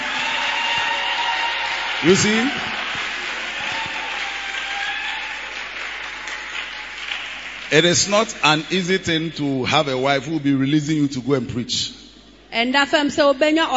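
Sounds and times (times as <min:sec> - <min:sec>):
audience clapping: 0:00.0 - 0:09.2
speech: 0:02.0 - 0:02.8, 0:07.7 - 0:13.7.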